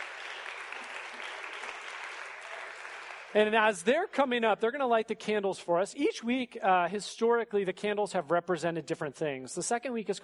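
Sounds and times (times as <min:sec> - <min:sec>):
round of applause: 0:00.0 - 0:03.6
speech: 0:03.3 - 0:10.2.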